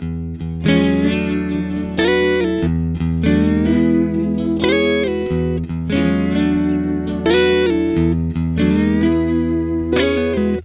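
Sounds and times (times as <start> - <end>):
guitar licks: 0.0 - 10.6.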